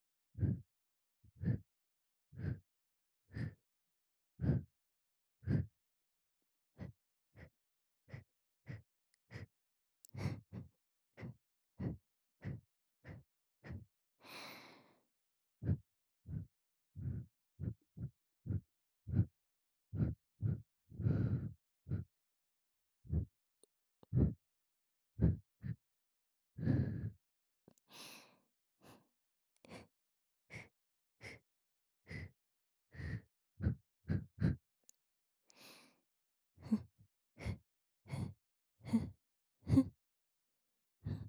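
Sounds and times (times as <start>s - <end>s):
continuous breathing in the left ear: 0.3s - 0.7s, 1.3s - 1.7s, 2.3s - 2.7s, 3.3s - 3.7s, 4.4s - 4.7s, 5.4s - 5.8s, 6.7s - 22.1s, 23.0s - 23.3s, 24.0s - 24.4s, 25.2s - 25.8s, 26.6s - 34.7s, 35.5s - 40.0s, 41.0s - 41.2s.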